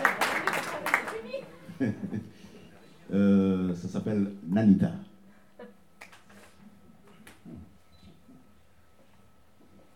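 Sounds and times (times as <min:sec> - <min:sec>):
audience applause: 0:00.0 - 0:01.5
speech: 0:01.8 - 0:02.5, 0:03.1 - 0:05.1.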